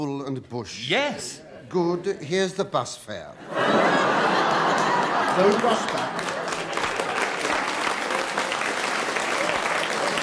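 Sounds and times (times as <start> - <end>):
speech: 0.0 - 4.3, 5.4 - 6.3
laughter: 1.2 - 2.6, 3.4 - 8.6
audience applause: 3.9 - 10.2.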